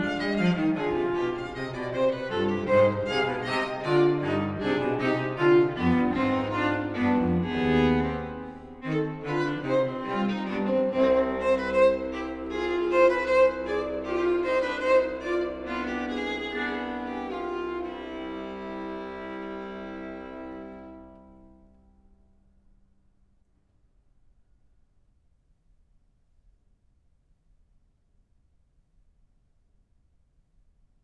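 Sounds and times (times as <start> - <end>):
string quartet playing a fugue in D major: 0.0 - 21.8.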